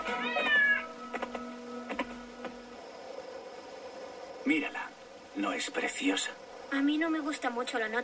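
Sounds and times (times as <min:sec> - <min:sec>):
cat meowing: 0:00.1 - 0:01.0
speech: 0:04.5 - 0:08.0.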